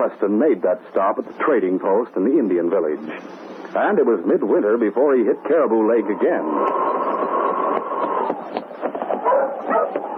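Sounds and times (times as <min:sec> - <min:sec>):
speech: 0:00.0 - 0:07.0
pack of sled dogs barking and yipping: 0:06.7 - 0:10.1.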